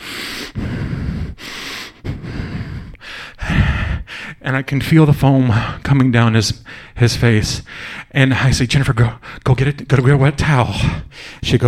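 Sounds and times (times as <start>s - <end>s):
person imitating heavy labored breathing through the nose: 0.0s - 4.4s, 6.6s - 7.0s, 7.6s - 8.2s, 9.2s - 9.4s, 10.8s - 11.4s
speech: 4.5s - 11.6s.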